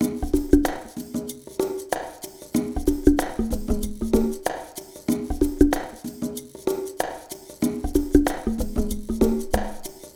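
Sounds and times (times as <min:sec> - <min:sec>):
shuffle percussion mix with liquid grooves: 0:00.0 - 0:10.1.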